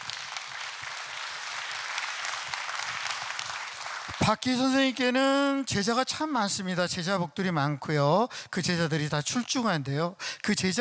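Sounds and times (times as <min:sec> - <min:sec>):
audience applause: 0:00.0 - 0:04.2
speech: 0:04.2 - 0:10.8.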